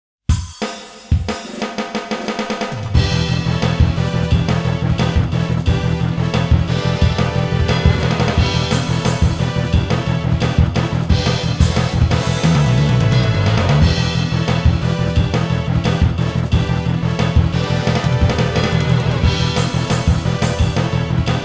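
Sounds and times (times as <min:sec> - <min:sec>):
tournament final match background game music: 0:00.4 - 0:21.4.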